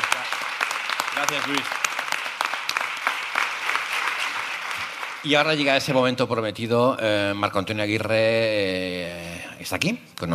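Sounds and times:
audience applause: 0.0 - 6.0
speech: 1.2 - 1.8, 5.2 - 10.3.

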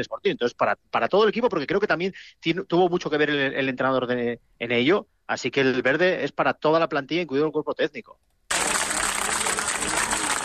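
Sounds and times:
speech: 0.0 - 8.4
applause: 8.5 - 10.4.

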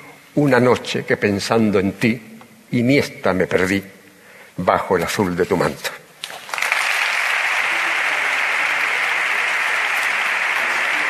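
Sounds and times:
speech: 0.4 - 4.0, 4.6 - 6.0
crowd applauding in an ovation: 6.2 - 11.0.

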